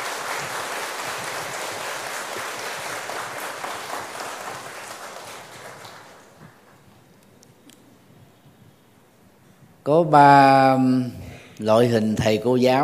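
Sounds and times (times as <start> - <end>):
audience applause: 0.0 - 6.8
speech: 9.9 - 12.8.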